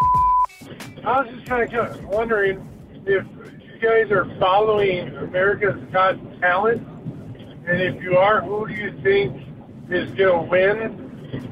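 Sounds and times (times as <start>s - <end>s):
voicemail beep tone: 0.0s - 0.6s
speech: 1.0s - 6.9s, 7.7s - 11.5s.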